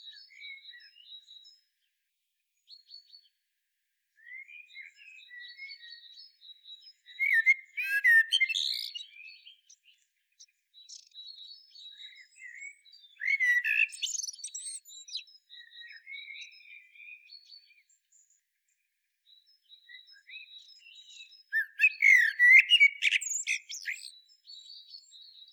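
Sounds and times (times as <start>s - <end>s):
common blackbird song: 0.0s - 25.5s
thin whistles from other birds: 7.2s - 9.0s, 12.1s - 15.2s, 21.6s - 24.1s.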